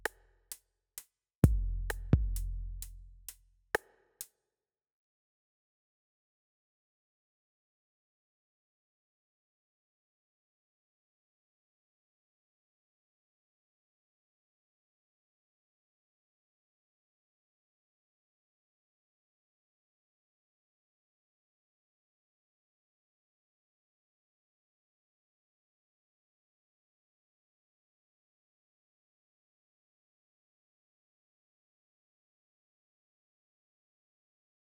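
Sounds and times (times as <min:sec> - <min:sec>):
drums and percussion: 0:01.4 - 0:03.9.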